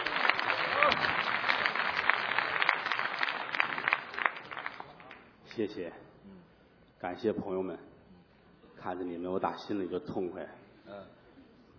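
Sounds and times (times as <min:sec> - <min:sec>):
audience applause: 0:00.0 - 0:05.2
speech: 0:05.6 - 0:06.1, 0:07.0 - 0:07.9, 0:08.8 - 0:11.2.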